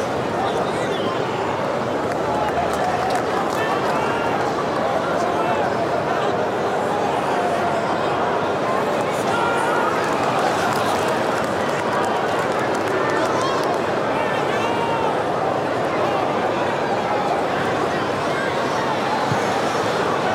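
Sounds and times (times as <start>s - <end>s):
scattered rugby league crowd shouts and cheers: 0.0s - 20.3s
rugby league crowd roaring: 6.7s - 20.3s.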